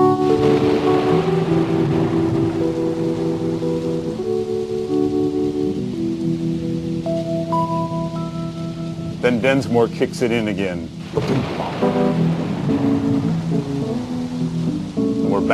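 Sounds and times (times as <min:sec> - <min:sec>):
thunder sound effect in song: 0:00.0 - 0:03.7, 0:11.0 - 0:14.8
rain sound effect in song: 0:00.0 - 0:15.5
speech: 0:09.4 - 0:12.4.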